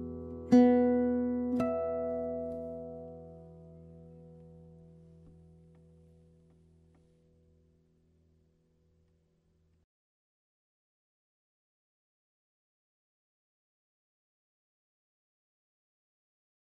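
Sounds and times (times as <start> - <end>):
guitar: 0.0 - 9.2.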